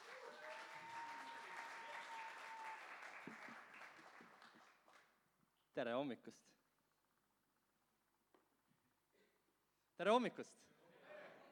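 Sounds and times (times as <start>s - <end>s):
audience applause: 0.0s - 5.0s
speech: 5.8s - 6.6s, 10.0s - 10.8s.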